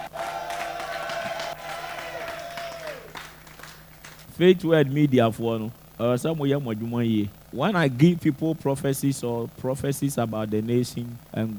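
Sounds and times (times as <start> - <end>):
audience cheering and clapping: 0.0 - 4.3
speech: 4.4 - 11.5.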